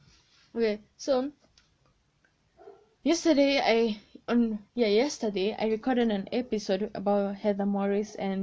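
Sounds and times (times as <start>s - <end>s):
speech: 0.6s - 1.4s, 3.0s - 8.4s
dog barking: 2.6s - 3.0s.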